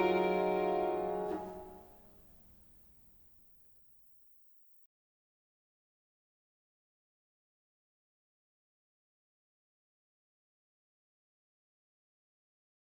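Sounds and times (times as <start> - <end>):
piano trio playing a moderato bagatelle: 0.0 - 1.9.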